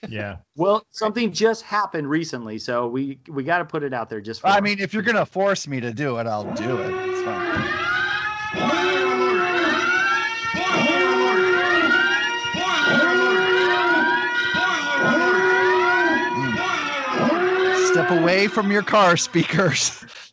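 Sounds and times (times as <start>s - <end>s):
speech: 0.0s - 9.0s, 18.0s - 20.2s
spoiler alert alarm sound effect: 6.4s - 19.9s.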